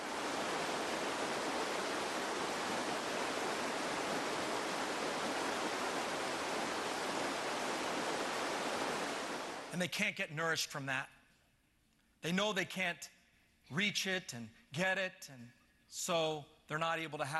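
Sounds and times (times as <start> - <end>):
roaring rush of deep water: 0.0 - 9.7
speech: 9.8 - 11.2, 12.2 - 17.3.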